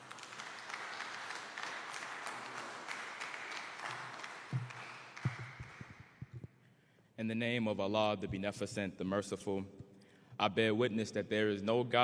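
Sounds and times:
round of applause: 0.0s - 6.4s
speech: 7.2s - 9.8s, 10.4s - 12.0s.

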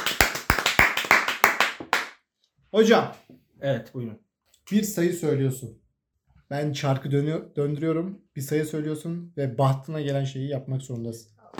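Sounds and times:
clapping: 0.0s - 2.2s
speech: 2.7s - 5.8s, 6.5s - 11.3s.

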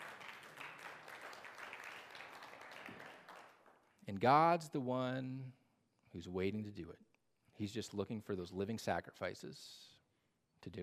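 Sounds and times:
audience clapping: 0.0s - 4.0s
speech: 4.1s - 9.9s, 10.6s - 10.8s.

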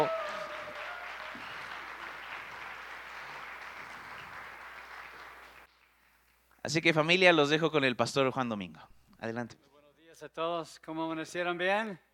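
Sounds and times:
audience applause: 0.0s - 6.0s
speech: 6.7s - 12.1s.

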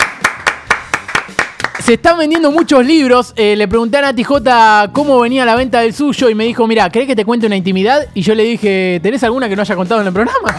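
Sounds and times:
applause: 0.0s - 2.0s
speech: 1.9s - 10.5s.

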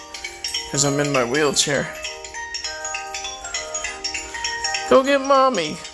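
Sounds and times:
phone ringtone for an incoming call: 0.0s - 5.9s
speech: 0.7s - 2.0s, 4.9s - 5.9s.

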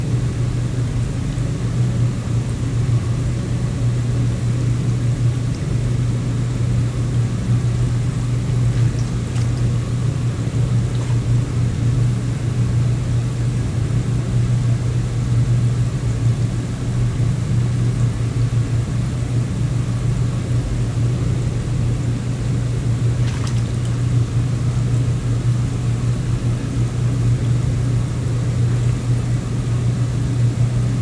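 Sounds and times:
churning jacuzzi motor low hum: 0.0s - 30.9s
jacuzzi jets gushing air underwater: 8.5s - 11.8s, 23.1s - 24.3s.

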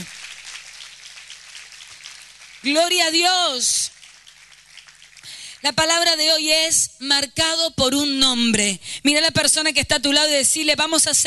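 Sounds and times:
applause: 0.0s - 6.2s
speech: 2.6s - 4.0s, 5.6s - 11.2s.

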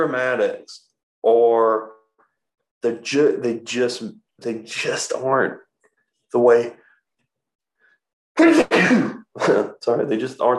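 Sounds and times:
speech: 0.0s - 2.0s, 2.8s - 5.6s, 6.3s - 6.8s, 8.4s - 10.5s
person sneezing: 8.4s - 9.2s.

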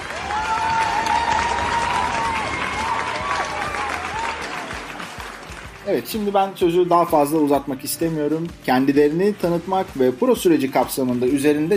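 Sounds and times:
audience applause: 0.0s - 6.4s
speech: 5.9s - 11.7s.

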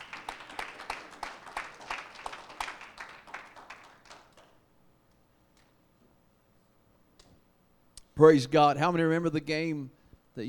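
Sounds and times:
crowd, audience hand clapping: 0.0s - 4.6s
speech: 8.2s - 10.4s.

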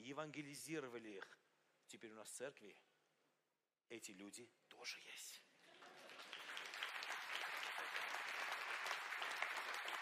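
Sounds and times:
speech: 0.0s - 2.9s, 3.9s - 6.1s
audience applause: 5.7s - 10.0s.

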